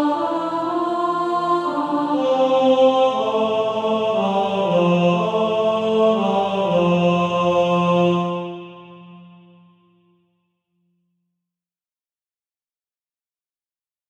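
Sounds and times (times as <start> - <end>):
male choir singing, second tenor part: 0.0 - 9.6.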